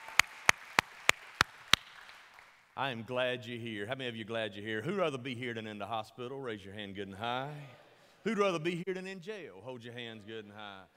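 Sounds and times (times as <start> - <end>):
audience clapping in unison: 0.0 - 2.8
speech: 2.8 - 10.9.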